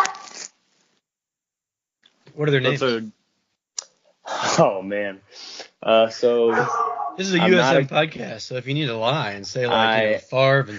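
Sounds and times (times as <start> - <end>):
speech: 2.4 - 3.2, 4.6 - 10.7
deep harsh Doberman bark in another room: 6.5 - 7.2.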